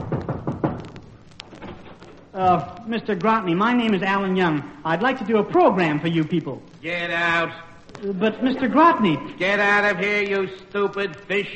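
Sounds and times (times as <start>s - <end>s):
knocking on an office door: 0.0s - 1.0s
speech: 2.4s - 11.5s.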